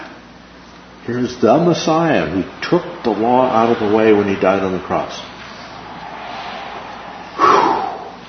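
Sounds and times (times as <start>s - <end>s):
speech: 1.1s - 5.3s
person taking a big breath: 7.4s - 8.2s.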